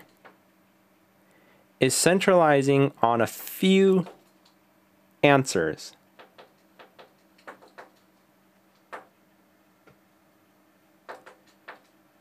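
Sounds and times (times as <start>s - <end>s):
speech: 1.8s - 4.2s, 5.2s - 6.0s
bird pecking at window glass: 6.1s - 9.2s, 11.0s - 12.0s.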